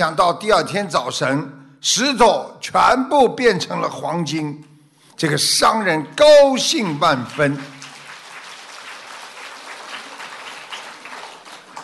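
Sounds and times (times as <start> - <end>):
speech: 0.0 - 7.8
audience applause: 7.0 - 11.8.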